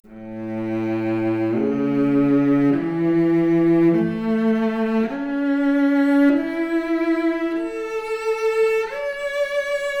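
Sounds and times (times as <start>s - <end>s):
noisy cello arpeggio: 0.0s - 9.9s.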